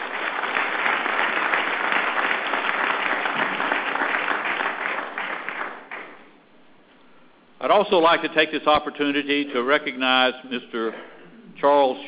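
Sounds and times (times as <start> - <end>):
audience applause: 0.0 - 6.2
speech: 7.6 - 12.0.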